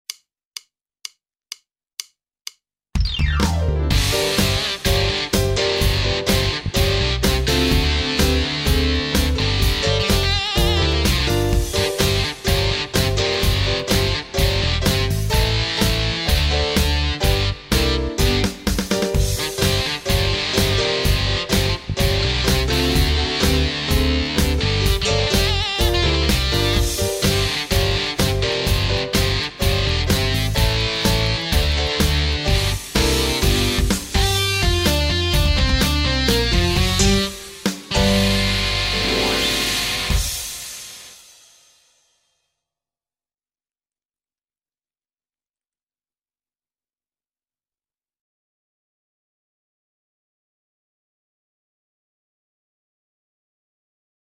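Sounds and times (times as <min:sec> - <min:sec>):
instrumental recorder accompaniment: 0:03.0 - 0:40.5.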